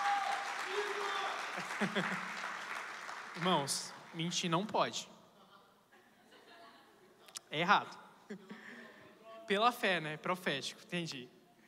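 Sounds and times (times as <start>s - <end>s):
audience applause: 0.0s - 4.2s
speech: 1.8s - 2.4s, 3.4s - 5.1s, 7.5s - 8.6s, 9.5s - 11.4s.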